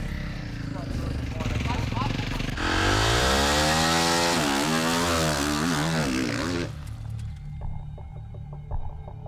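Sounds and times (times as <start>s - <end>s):
motocross bike engines revving while riding out to the starting grid: 0.0s - 7.0s
people talking: 0.7s - 2.5s.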